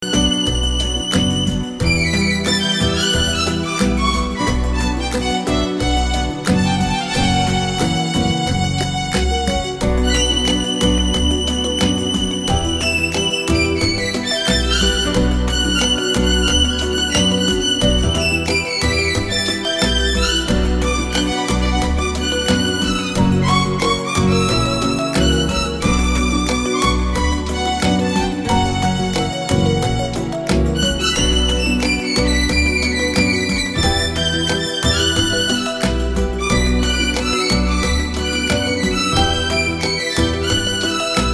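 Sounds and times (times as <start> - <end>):
Latin bolero music: 0.0 - 41.3.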